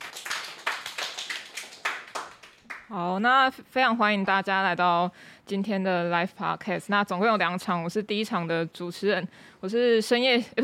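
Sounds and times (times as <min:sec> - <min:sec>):
small group audience applause: 0:00.0 - 0:02.9
speech: 0:02.9 - 0:10.6.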